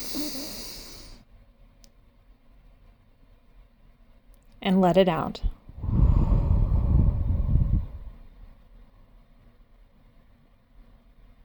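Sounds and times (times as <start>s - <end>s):
deep breath in during guided meditation: 0.0s - 1.2s, 5.8s - 8.3s
speech: 4.6s - 5.6s.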